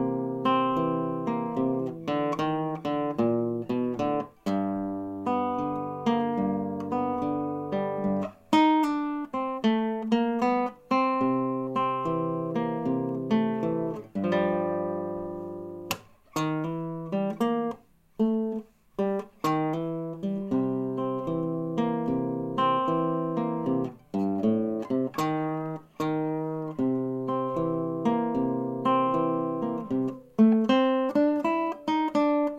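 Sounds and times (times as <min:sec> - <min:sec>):
blues guitar: 0:00.0 - 0:32.5.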